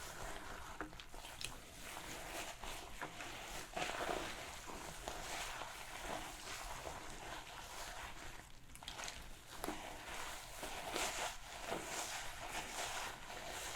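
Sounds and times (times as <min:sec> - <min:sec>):
hair being shampooed and brushed: 0:00.0 - 0:13.7.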